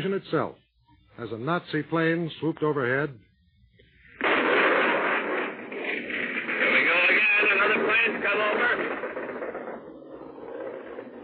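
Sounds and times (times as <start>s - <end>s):
speech: 0.0s - 0.6s, 1.2s - 3.3s
anti-aircraft gun barrage firing: 4.1s - 11.2s.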